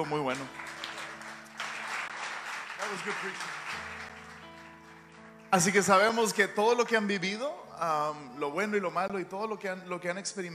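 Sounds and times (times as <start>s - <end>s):
speech: 0.0s - 0.7s, 2.9s - 3.9s, 5.5s - 10.5s
audience applause: 0.0s - 6.2s.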